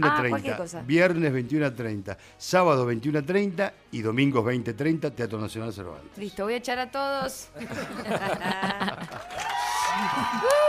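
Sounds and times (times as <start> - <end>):
speech: 0.0 - 10.6
laughter: 7.6 - 10.6
audience applause: 8.6 - 10.6
people cheering and whooping: 8.8 - 10.6.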